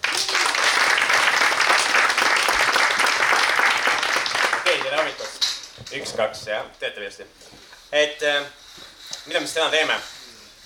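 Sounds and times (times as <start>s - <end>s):
audience applause: 0.0s - 5.2s
speech: 6.0s - 8.6s, 9.2s - 10.6s.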